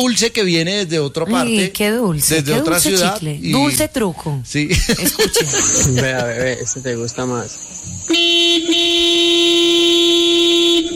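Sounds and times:
speech: 0.0s - 8.3s
laughter: 4.7s - 6.8s
long loud car horn honk: 8.0s - 10.9s.

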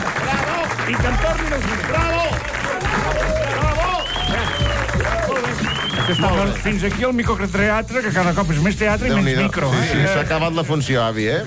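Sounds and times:
audience applauding loudly: 0.0s - 7.5s
speech: 0.9s - 3.3s, 6.1s - 11.4s.

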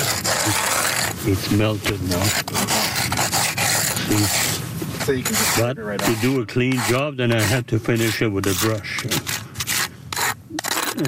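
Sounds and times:
plastic snow scraper scraping cement-crusted base of polished granite headstone: 0.0s - 11.0s
speech: 1.2s - 2.8s, 4.1s - 9.3s.

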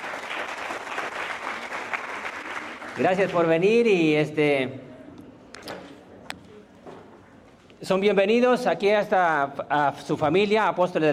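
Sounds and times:
audience applause: 0.0s - 3.5s
speech: 3.0s - 4.9s, 7.8s - 11.1s.

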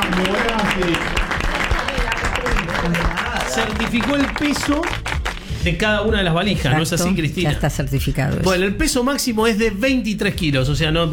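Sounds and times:
studio audience applause: 0.0s - 5.9s
speech: 3.6s - 11.1s.

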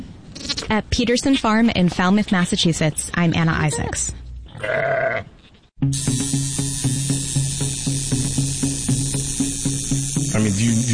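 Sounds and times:
speech: 0.7s - 5.1s, 5.8s - 6.6s
sheep bleating: 4.6s - 5.3s
steady rhythmic mechanical buzzing: 5.8s - 10.9s.

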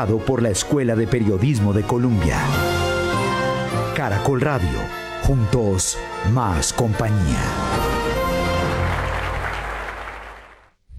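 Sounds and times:
speech: 0.0s - 2.8s, 4.0s - 8.0s
radio newsroom team applauding a journalism gold medal winner: 7.6s - 10.8s.

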